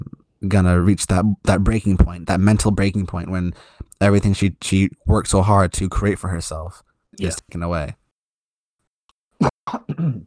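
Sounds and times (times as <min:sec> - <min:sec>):
speech: 0:00.4 - 0:08.0, 0:09.4 - 0:10.2
cough: 0:09.4 - 0:10.2.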